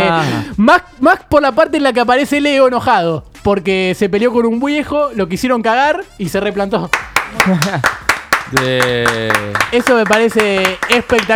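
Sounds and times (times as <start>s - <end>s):
speech: 0.1s - 11.3s
hand clapping: 6.9s - 11.3s
laughter: 7.3s - 8.1s.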